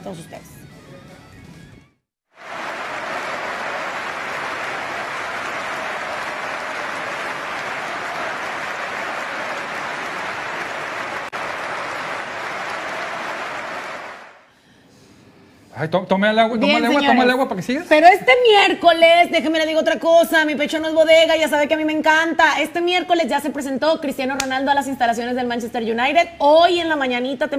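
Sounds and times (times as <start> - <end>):
speech: 0.1 - 0.7, 15.8 - 27.5
stadium crowd applauding: 2.3 - 14.5.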